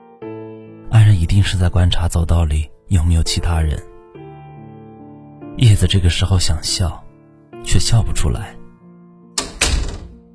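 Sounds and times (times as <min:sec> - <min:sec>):
speech: 0:01.2 - 0:03.9, 0:05.6 - 0:07.0, 0:07.6 - 0:08.6
door closing: 0:09.4 - 0:10.3.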